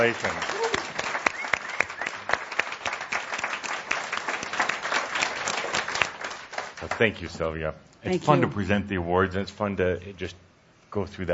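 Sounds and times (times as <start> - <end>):
speech: 0.0 - 0.6, 6.8 - 11.3
audience applause: 0.0 - 7.3.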